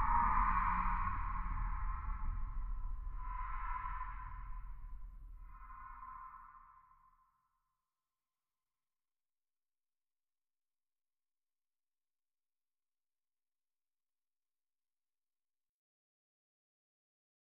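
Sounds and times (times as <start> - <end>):
very low metallic underwater ambience: 0.0 - 7.0.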